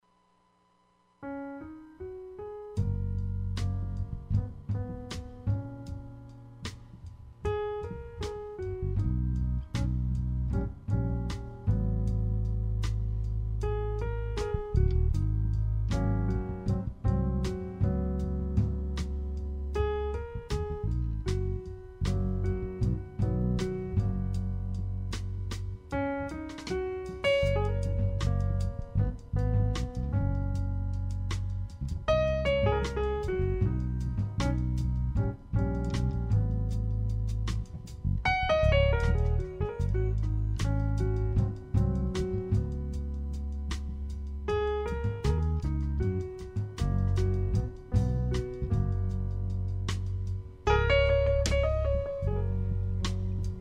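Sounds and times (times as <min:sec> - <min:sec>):
jazz music: 0:01.2 - 0:53.5.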